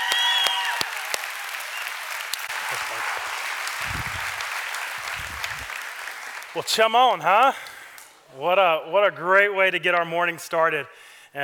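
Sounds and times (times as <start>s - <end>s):
rowdy round of applause: 0.0s - 6.8s
speech: 2.7s - 4.0s, 6.6s - 7.7s, 8.3s - 11.4s.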